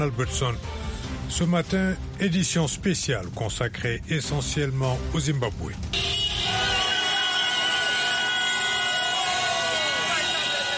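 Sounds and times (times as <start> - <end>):
speech: 0.0 - 6.0
car horns honking: 5.9 - 10.7
street crowd cheering and shouting: 5.9 - 10.7.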